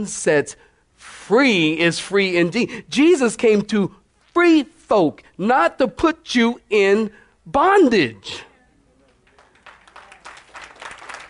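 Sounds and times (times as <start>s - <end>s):
speech: 0.0s - 8.5s
crowd clapping: 9.0s - 11.2s.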